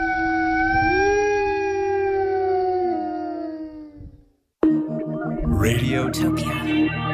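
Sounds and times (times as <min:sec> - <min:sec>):
wolf howling: 0:00.0 - 0:04.2
speech: 0:05.6 - 0:07.0.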